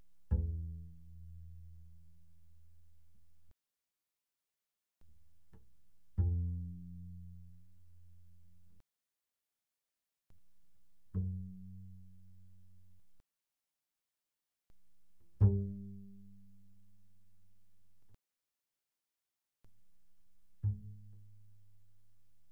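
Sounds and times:
double bass pizzicato mezzo forte on the A string: 0.0s - 3.0s, 5.6s - 8.8s, 11.1s - 13.2s, 15.3s - 18.0s, 20.4s - 22.5s.

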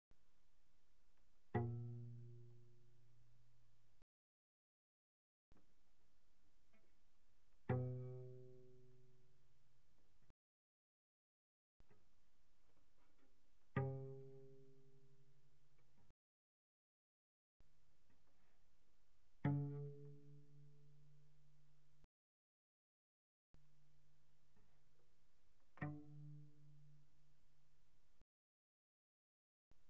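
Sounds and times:
cello pizzicato pianissimo sul C: 0.8s - 4.0s, 5.6s - 10.2s, 11.8s - 16.0s, 17.6s - 22.1s, 23.6s - 28.2s.

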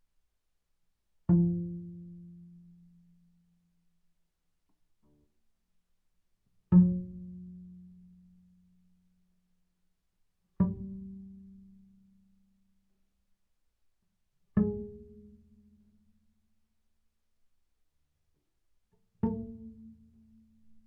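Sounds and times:
double bass pizzicato on the D string fortissimo: 1.3s - 3.0s, 6.7s - 8.6s, 10.6s - 12.3s, 14.6s - 15.9s, 19.2s - 20.8s.

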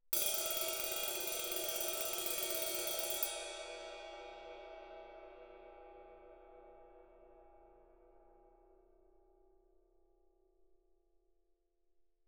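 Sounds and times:
ride and suspended cymbals rolled with sticks: 0.2s - 7.7s.

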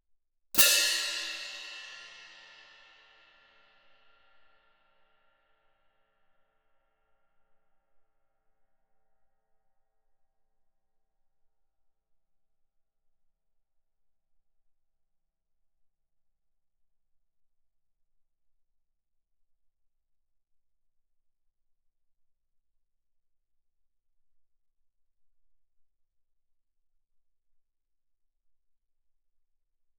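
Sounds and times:
fortissimo orchestral crash cymbals: 0.6s - 3.6s.

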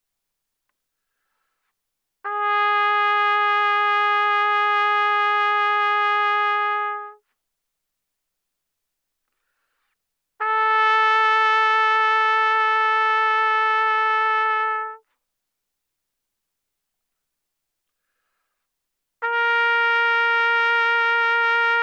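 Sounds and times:
trumpet vibrato at mezzo-forte from C4 to B4: 2.3s - 7.2s, 10.4s - 15.0s, 19.2s - 21.8s.

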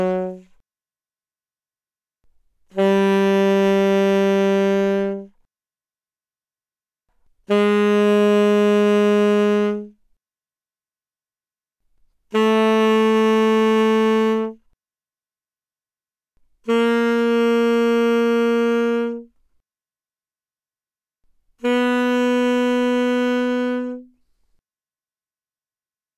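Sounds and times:
loud alto saxophone notes without vibrato: 0.0s - 0.6s, 2.7s - 5.4s, 7.4s - 10.0s, 12.3s - 14.7s, 16.6s - 19.4s, 21.6s - 24.3s.

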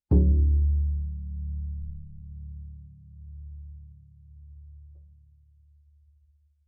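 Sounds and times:
double bass pizzicato fortissimo on the C string: 0.1s - 4.3s.

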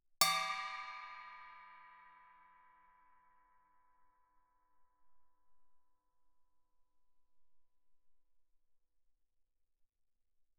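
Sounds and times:
Chinese stick bell played fortissimo: 0.2s - 3.0s.

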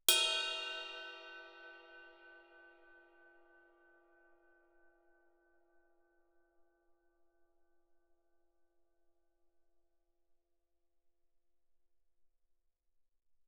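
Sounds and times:
loud stick hit on suspended ride cymbal bell: 0.1s - 2.7s.

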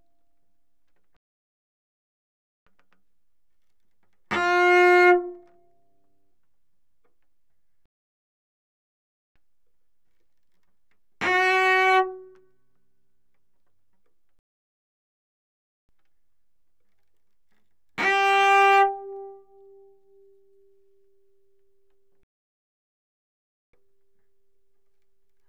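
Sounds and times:
cello bowed fortissimo on the D string: 4.4s - 5.5s, 11.3s - 12.4s, 18.0s - 20.9s.

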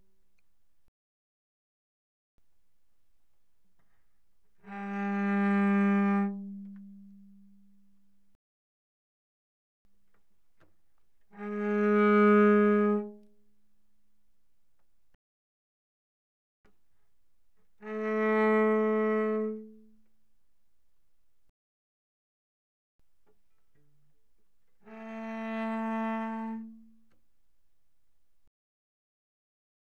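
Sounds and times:
cello bowed pianissimo on G string: 4.1s - 8.2s, 10.6s - 13.4s, 17.6s - 20.2s, 23.4s - 27.2s.

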